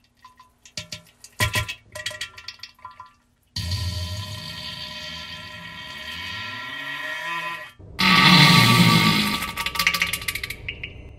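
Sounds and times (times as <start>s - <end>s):
diarrhea: 3.6s - 10.7s.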